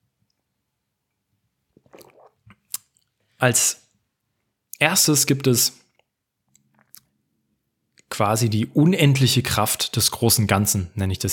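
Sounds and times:
person taking a small sip of tea: 0:01.7 - 0:03.2
speech: 0:03.4 - 0:03.8, 0:04.8 - 0:05.8, 0:08.2 - 0:11.3.

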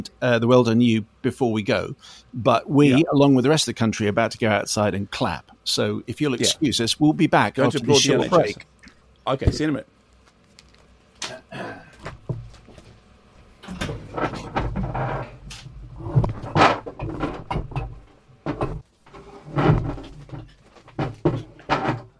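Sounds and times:
speech: 0:00.0 - 0:10.0
cupboard door opening and closing: 0:13.6 - 0:22.1.

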